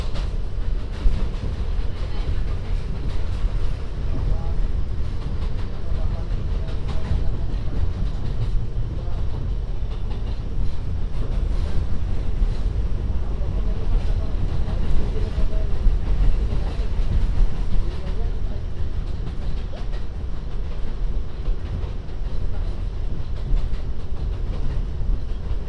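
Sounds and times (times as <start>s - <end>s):
MTA subway train rumble: 0.0s - 25.6s
faint murmuring voices: 1.8s - 20.7s.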